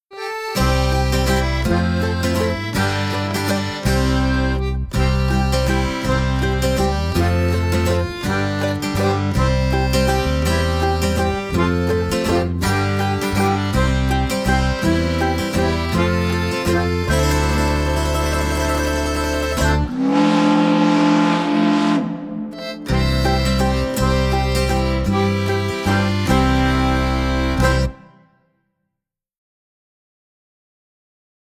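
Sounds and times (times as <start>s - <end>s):
sea shanty: 0.2s - 28.2s.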